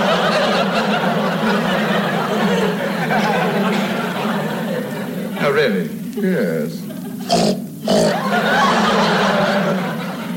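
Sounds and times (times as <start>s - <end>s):
laughter: 0.0s - 10.3s
speech: 5.5s - 7.6s
voice imitating a pig with snorting grunts and squeals: 7.2s - 8.3s.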